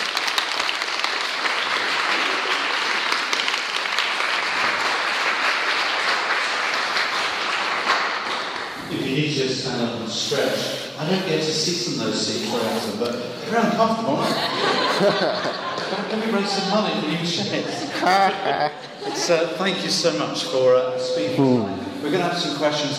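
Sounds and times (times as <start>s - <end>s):
audience applauding: 0.0s - 9.2s
speech: 9.7s - 22.9s
laughter: 11.0s - 20.4s, 21.6s - 22.9s.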